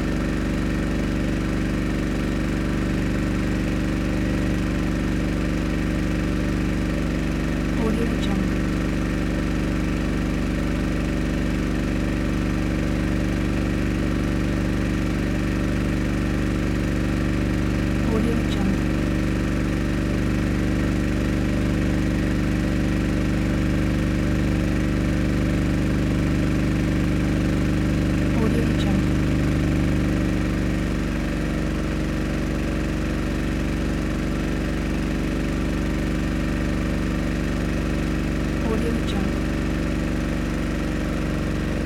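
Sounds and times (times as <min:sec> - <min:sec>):
motorboat engine: 0:00.0 - 0:41.8.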